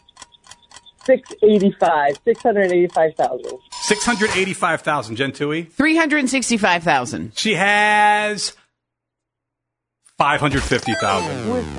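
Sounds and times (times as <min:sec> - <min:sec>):
quiz game countdown timer ticking: 0:00.0 - 0:04.7, 0:10.6 - 0:11.7
speech: 0:01.0 - 0:08.6, 0:10.2 - 0:11.7.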